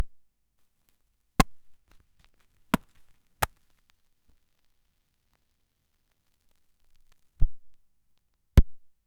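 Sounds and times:
pop sound on labels: 2.8 - 3.6.

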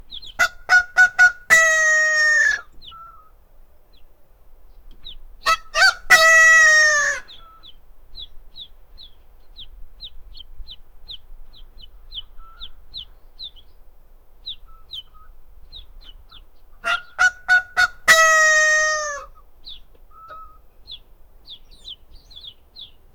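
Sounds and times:
rare white long bird calling: 0.3 - 3.2, 5.5 - 7.6, 16.8 - 19.4.

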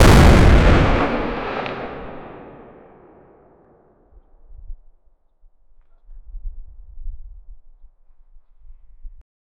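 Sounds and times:
cannon shot boom: 0.0 - 3.6.

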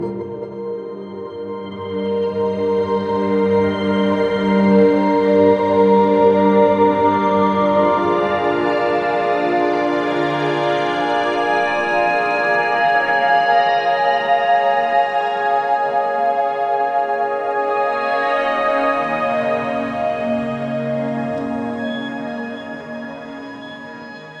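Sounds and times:
evocative ambient synth: 0.0 - 24.3.

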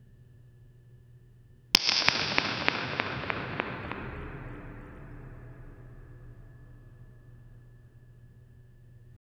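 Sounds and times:
whip crack in a cathedral: 1.8 - 5.8.

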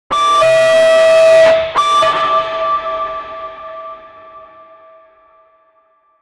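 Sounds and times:
emergency alarm with descending tone: 0.1 - 4.6.

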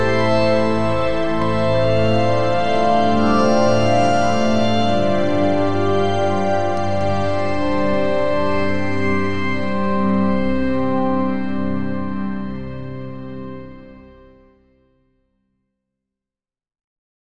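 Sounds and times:
moonlit calm magical fantasy music: 0.0 - 12.4.

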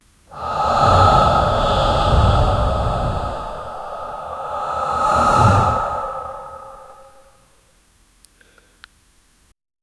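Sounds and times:
single breath in: 0.3 - 7.4.

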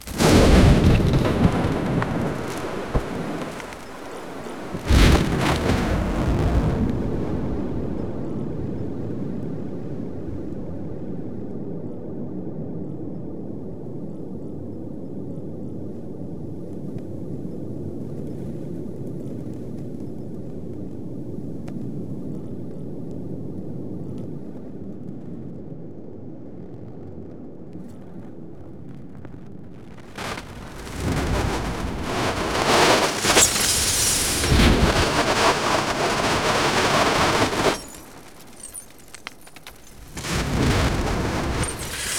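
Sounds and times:
sudden sky crack and thunder: 0.0 - 8.6, 30.0 - 42.1.

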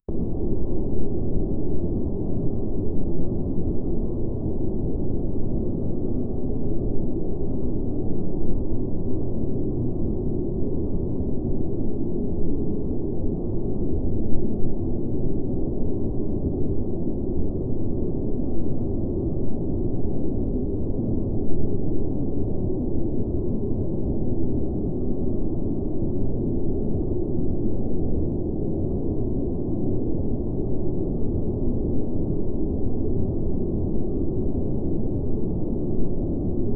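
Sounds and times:
soft fog ambient noise: 0.1 - 36.7.

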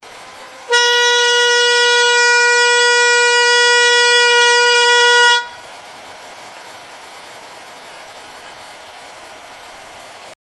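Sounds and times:
short air horn blast in a prank: 0.7 - 5.6.

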